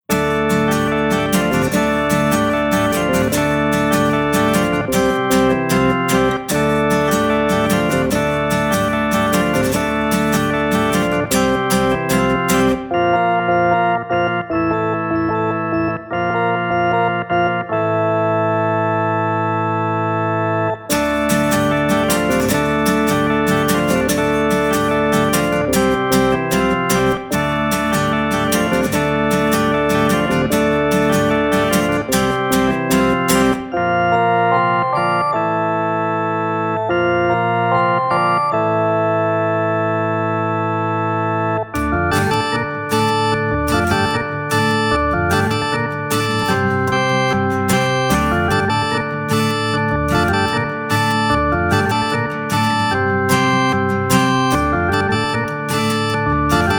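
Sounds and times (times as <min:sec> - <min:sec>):
organ music: 0:00.0 - 0:56.7.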